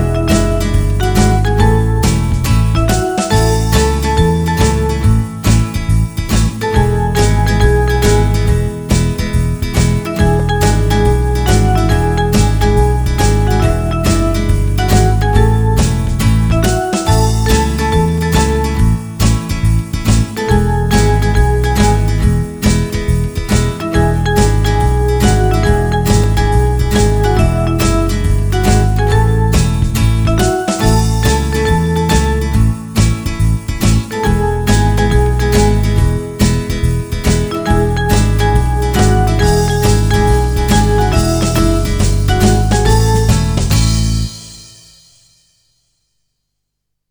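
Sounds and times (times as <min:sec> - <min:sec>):
rock percussion instruments without vocals: 0:00.0 - 0:45.3.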